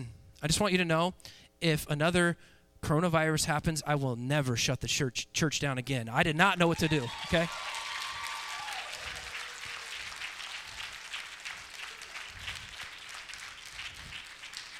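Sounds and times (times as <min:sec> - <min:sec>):
speech: 0:00.0 - 0:07.8
audience applause: 0:06.8 - 0:14.7.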